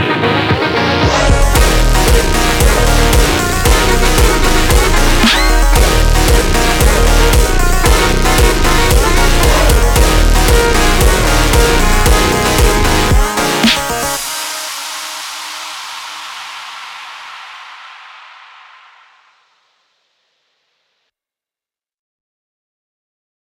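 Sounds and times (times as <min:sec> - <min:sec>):
super slowed montagem music: 0:00.0 - 0:17.0.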